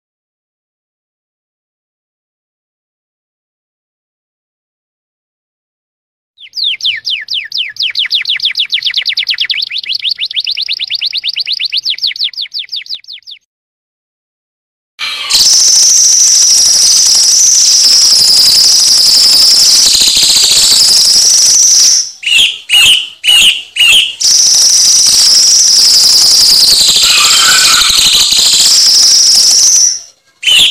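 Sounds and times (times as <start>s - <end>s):
cucak cungkok singing upslurred whistles: 6.4s - 13.4s, 15.0s - 30.6s.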